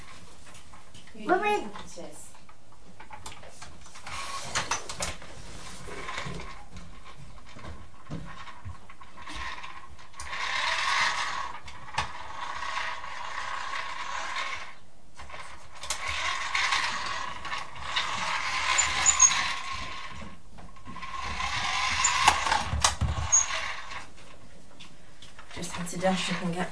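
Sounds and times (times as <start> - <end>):
speech: 1.2 - 2.3, 26.0 - 26.7
toy fire engine mechanism whirring and grinding: 4.0 - 5.0, 5.9 - 7.6, 8.2 - 24.3, 25.4 - 26.7.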